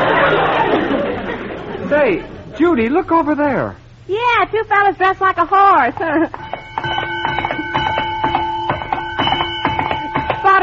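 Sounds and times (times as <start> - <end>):
laughter: 0.0 - 2.9
speech: 2.0 - 7.0
bell clanging: 6.3 - 10.6.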